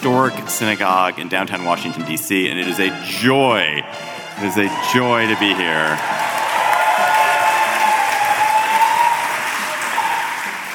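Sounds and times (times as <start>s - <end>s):
speech: 0.0s - 6.3s
live audience applauding: 4.4s - 10.7s.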